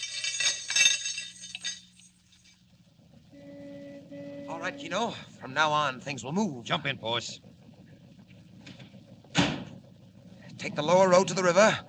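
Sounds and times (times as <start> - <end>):
metal handcuff chain links clinking: 0.0 - 2.6
low steady hum: 0.0 - 11.8
speech: 4.6 - 7.5, 10.6 - 11.8.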